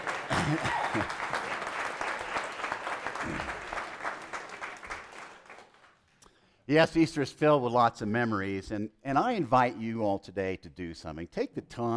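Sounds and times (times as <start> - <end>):
crowd applauding: 0.0 - 6.0
speech: 0.5 - 1.4, 6.7 - 11.9.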